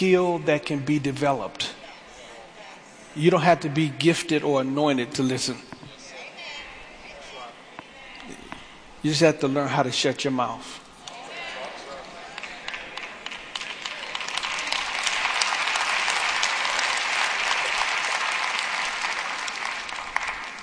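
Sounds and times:
speech: 0.0 - 1.8, 3.2 - 5.8, 9.0 - 10.8
audience clapping: 11.8 - 20.6.

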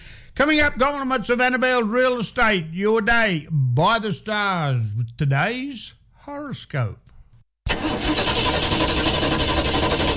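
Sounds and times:
speech: 0.4 - 7.0
car engine starting and running: 7.7 - 10.1.

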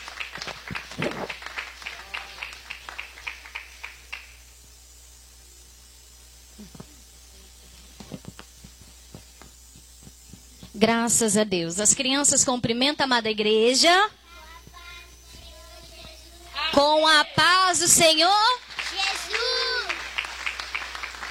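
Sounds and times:
audience applause: 0.0 - 4.3, 18.6 - 21.2
speech: 10.8 - 14.2, 16.8 - 18.6.

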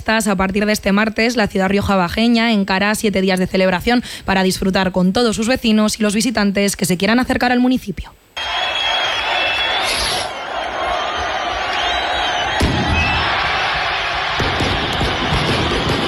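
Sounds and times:
speech: 0.0 - 8.7
festival crowd roar in the town hall square in Calahorra: 8.4 - 16.0
chupinazo firework rocket bangs opening Calahorra's town festival: 12.4 - 16.0.

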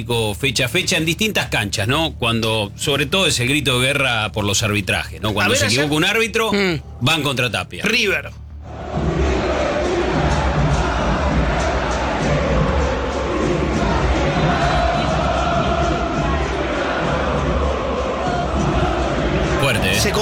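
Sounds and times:
speech: 0.0 - 8.4
football crowd chanting insults at stadium: 5.2 - 7.5, 8.5 - 20.1.

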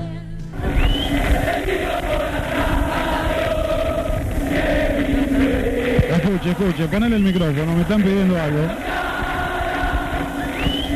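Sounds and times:
rising whistle: 0.6 - 1.4, 10.2 - 10.9
football fans chanting in stadium: 0.6 - 10.9
speech: 6.3 - 9.0.

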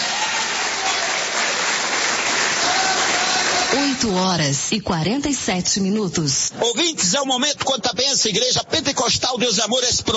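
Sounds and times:
audience clapping hands: 0.0 - 4.4
speech: 3.8 - 10.1.

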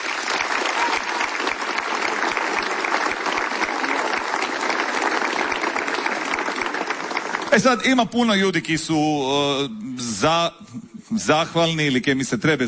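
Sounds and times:
audience applause at a festival concert: 0.0 - 8.2
speech: 7.6 - 12.6.

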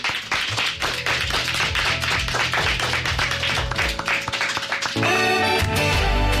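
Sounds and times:
children's applause: 0.0 - 6.3.

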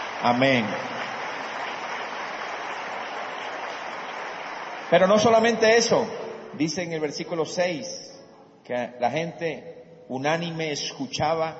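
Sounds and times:
audience applause: 0.0 - 5.5
speech: 0.2 - 1.0, 4.9 - 11.5.

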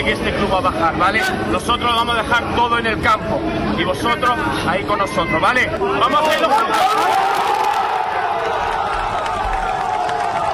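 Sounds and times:
speech: 0.0 - 7.5
football fans applauding and cheering: 6.8 - 10.5.

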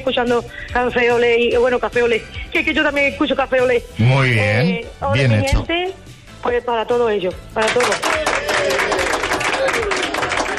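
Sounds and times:
speech: 0.0 - 9.0
audience clapping: 7.6 - 10.5.

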